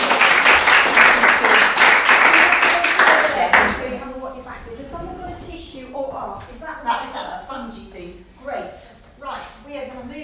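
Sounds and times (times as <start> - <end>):
crowd applause: 0.0 - 3.8.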